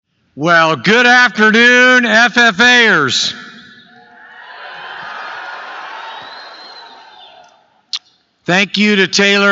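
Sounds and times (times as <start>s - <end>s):
speech: 0.4s - 3.4s, 8.5s - 9.5s
audience cheering: 4.1s - 7.6s
audience applause: 4.7s - 7.4s.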